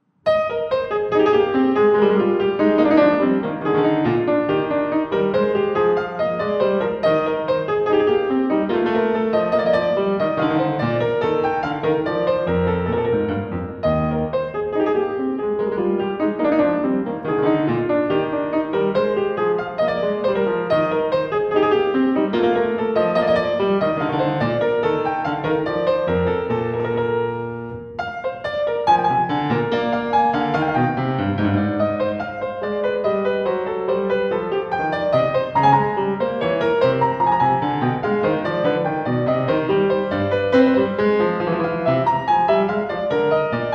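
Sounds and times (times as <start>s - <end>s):
baroque suite gavotte: 0.3s - 43.7s.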